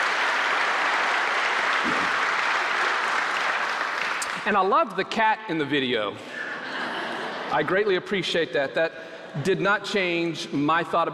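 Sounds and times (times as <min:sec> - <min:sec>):
audience applauding: 0:00.0 - 0:04.5
speech: 0:04.4 - 0:06.3, 0:07.5 - 0:11.1.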